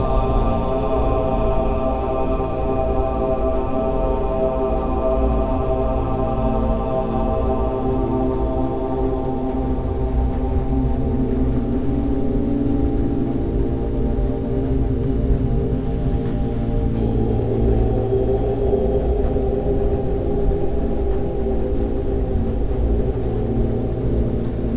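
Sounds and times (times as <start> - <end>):
rain: 0.0 - 24.7
relaxing music for meditation: 0.0 - 24.7.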